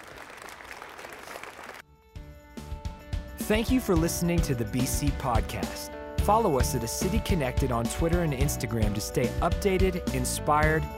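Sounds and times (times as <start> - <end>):
audience hand clapping: 0.0 - 1.8
speech: 3.5 - 10.9.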